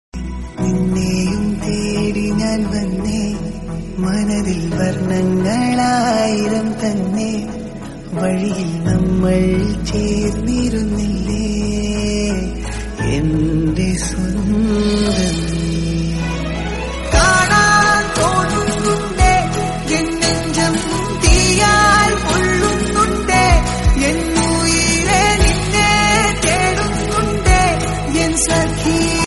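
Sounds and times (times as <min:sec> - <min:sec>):
Malayalam love song: 0:00.2 - 0:29.2.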